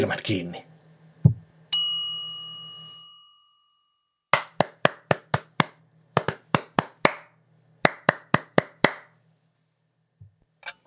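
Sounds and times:
speech: 0.0 - 0.7
hands clapping: 4.4 - 7.3, 7.9 - 9.1.

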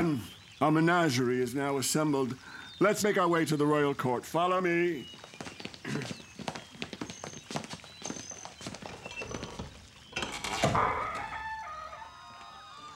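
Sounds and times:
speech: 0.0 - 6.2
thin high chirping calls: 0.0 - 12.9
horse hooves clip-clopping while walking: 4.6 - 12.9.

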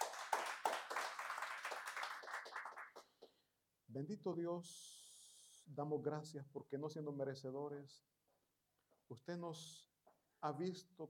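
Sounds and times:
audience applause: 0.0 - 3.1
speech: 3.9 - 5.0, 5.7 - 8.1, 9.1 - 11.0.

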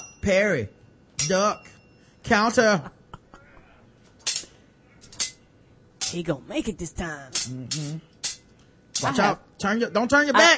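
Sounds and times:
speech: 0.2 - 3.0, 6.1 - 8.1, 9.0 - 10.5
sword-clash sound effect: 1.2 - 1.6, 4.2 - 5.4, 7.4 - 8.4, 9.0 - 9.2.

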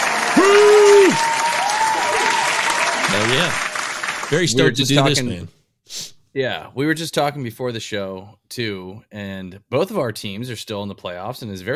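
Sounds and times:
applause sound effect button: 0.0 - 5.4
speech: 3.3 - 3.6, 4.3 - 11.7.

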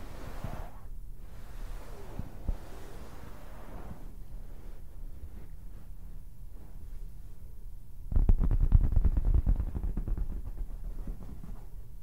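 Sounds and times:
fabric scratching and rubbing: 0.2 - 6.8, 8.1 - 12.0
deep rumble: 8.0 - 12.0.

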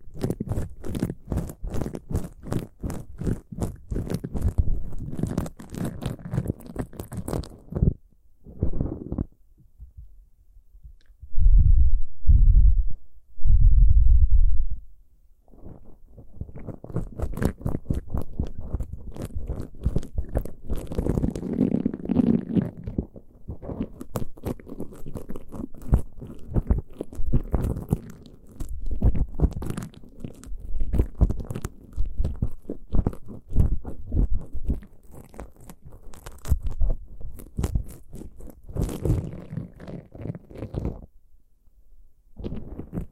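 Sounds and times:
ear picking crackling and scratching: 0.0 - 9.4, 15.5 - 41.1, 42.4 - 43.0
deep heartbeat simulation thumps: 9.8 - 10.2, 10.8 - 14.8.

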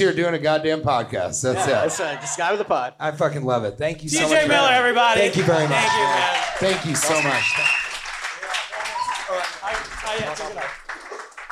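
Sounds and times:
speech: 0.0 - 7.8
scattered voices and cheers: 4.2 - 7.8, 8.4 - 10.7
comedy club audience applause: 5.2 - 11.5.

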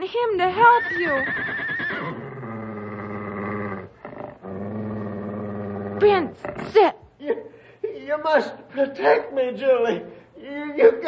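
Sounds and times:
speech: 0.1 - 1.7, 6.0 - 11.0
stallion neighing: 0.6 - 3.9
stallion snorting: 0.6 - 6.8.

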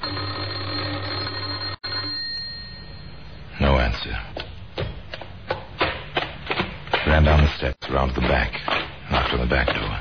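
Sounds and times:
electric doorbell ringing: 0.0 - 3.3
speech: 3.9 - 4.4, 7.1 - 9.9.

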